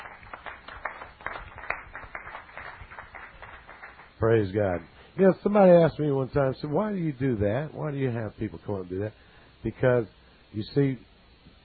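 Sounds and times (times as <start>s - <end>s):
audience clapping: 0.0s - 4.2s
speech: 4.2s - 11.1s.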